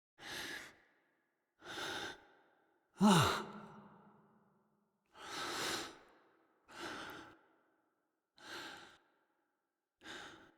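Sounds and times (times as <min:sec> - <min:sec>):
breathing in a hut: 0:01.6 - 0:04.0, 0:05.1 - 0:10.5.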